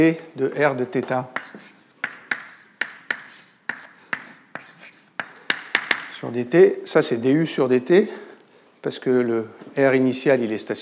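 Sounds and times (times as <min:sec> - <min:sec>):
speech: 0:00.0 - 0:01.6, 0:06.2 - 0:10.7
scratchy writing strokes of an equation during a lecture: 0:01.4 - 0:05.6.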